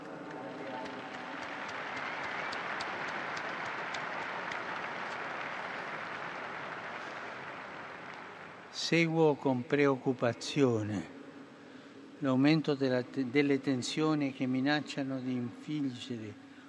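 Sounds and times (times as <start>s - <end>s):
crowd applause: 0.0s - 8.8s
speech: 8.8s - 11.2s, 12.2s - 16.4s.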